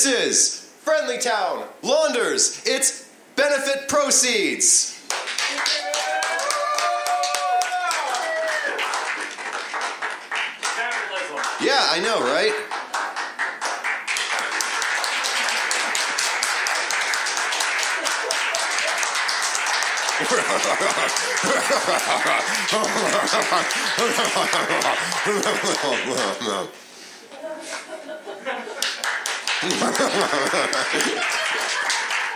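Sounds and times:
speech: 0.0s - 5.8s, 11.8s - 12.6s, 20.3s - 26.9s, 29.6s - 31.4s
crowd clapping: 5.0s - 26.7s, 28.7s - 32.3s
cheers: 5.4s - 9.2s, 17.9s - 26.0s
laughs: 20.2s - 32.3s.

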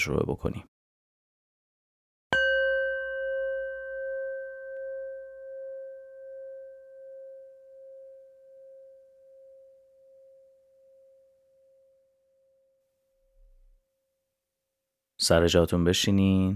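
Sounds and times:
speech: 0.0s - 0.8s, 15.2s - 16.5s
Tibetan singing bowl struck and ringing: 2.4s - 12.8s.

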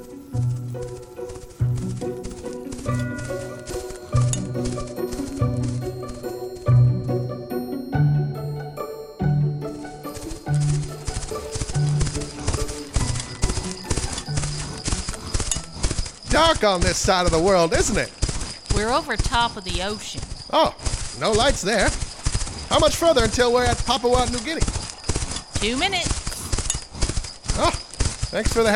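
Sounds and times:
tonal musical backdrop: 0.0s - 16.6s
jingling bells: 0.0s - 28.7s
reindeer hooves clip-clopping at sleigh takeoff: 0.0s - 28.7s
speech: 16.5s - 18.2s, 18.8s - 22.0s, 22.8s - 24.8s, 25.6s - 26.2s, 27.6s - 28.7s.

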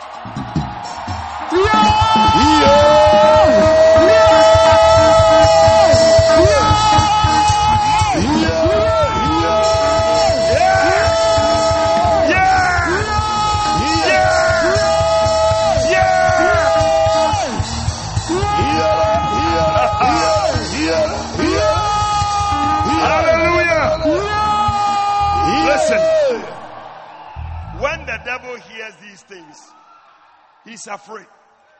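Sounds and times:
crowd shouting and yelling: 0.0s - 31.7s
speech: 30.8s - 31.4s.

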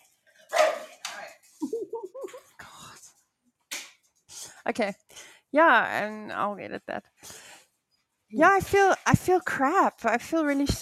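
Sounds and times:
dogs barking at a man arriving: 0.5s - 1.0s
speech: 4.7s - 7.2s, 8.3s - 10.8s.

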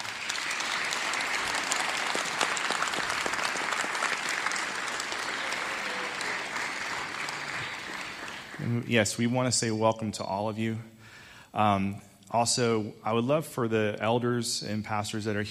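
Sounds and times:
church congregation applauding during a morning service: 0.0s - 9.0s
speech: 8.7s - 11.0s, 11.6s - 15.4s.

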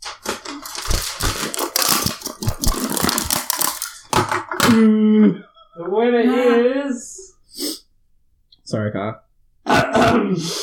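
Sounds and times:
envelope being opened loudly: 0.0s - 4.6s
speech: 4.7s - 7.3s, 8.7s - 9.2s, 10.0s - 10.6s.

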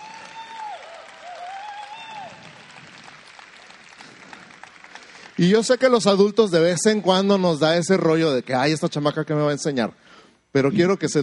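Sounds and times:
audience applause: 0.0s - 6.1s
speech: 5.4s - 11.2s.

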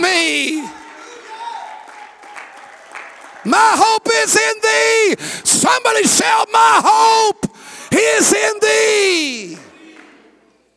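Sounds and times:
audience clapping hands: 0.0s - 5.4s, 8.5s - 10.7s
speech: 3.4s - 9.6s.

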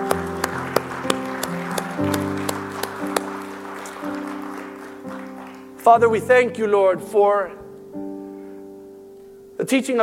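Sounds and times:
audience clapping hands: 0.0s - 5.9s
speech: 5.9s - 8.0s, 9.6s - 10.0s.

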